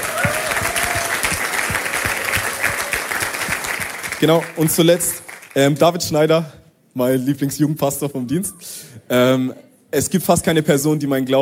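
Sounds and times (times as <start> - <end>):
church audience applause: 0.0 - 5.6
speech: 4.2 - 11.4.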